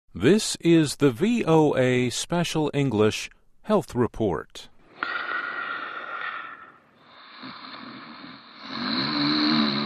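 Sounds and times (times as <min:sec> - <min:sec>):
speech: 0:00.2 - 0:05.3
loud snoring: 0:05.0 - 0:09.8.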